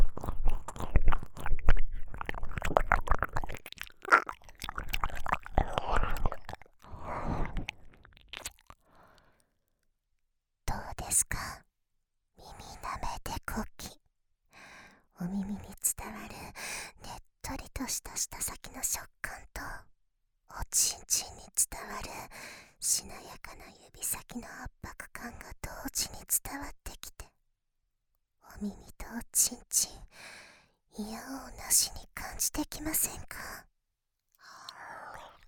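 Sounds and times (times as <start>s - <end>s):
wet ear licking: 0.0s - 8.8s
whispering: 10.7s - 11.6s, 12.4s - 14.0s, 15.2s - 19.9s, 20.6s - 27.3s, 28.5s - 30.1s, 31.0s - 33.7s, 34.4s - 35.4s.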